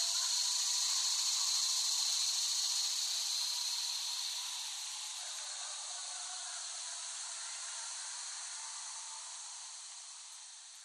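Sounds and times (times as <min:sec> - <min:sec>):
cicadas droning: 0:00.0 - 0:10.8.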